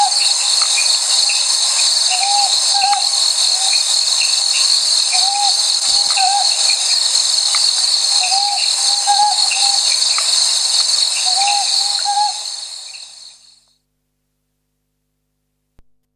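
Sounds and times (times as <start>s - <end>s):
Ryukyu ruddy kingfisher song: 0.0s - 1.4s, 2.1s - 4.4s, 5.1s - 7.0s, 8.2s - 10.3s, 11.2s - 13.6s.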